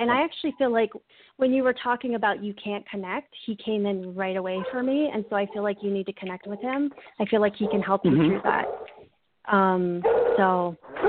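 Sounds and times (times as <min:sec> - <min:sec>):
speech: 0:00.0 - 0:08.9, 0:09.5 - 0:11.0
dog barking: 0:08.6 - 0:09.0, 0:10.0 - 0:11.0.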